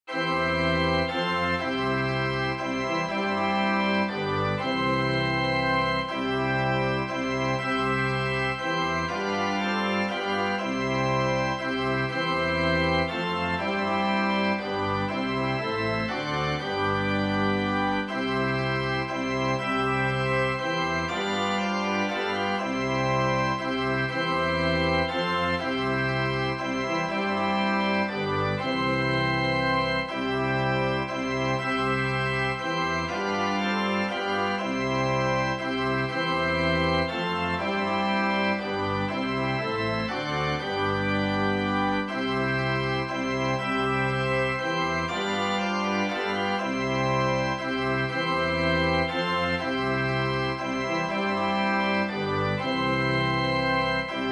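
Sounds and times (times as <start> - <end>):
organ hymn: 0.0 - 54.3.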